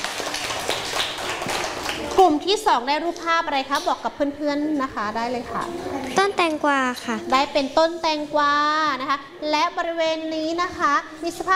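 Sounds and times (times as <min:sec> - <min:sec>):
classroom applause: 0:00.0 - 0:02.5
speech: 0:02.2 - 0:11.5.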